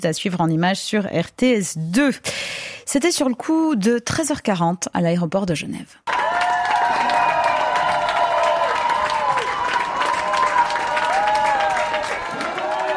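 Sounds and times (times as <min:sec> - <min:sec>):
speech: 0:00.0 - 0:06.2
intense applause at Geneva airport: 0:06.1 - 0:12.9.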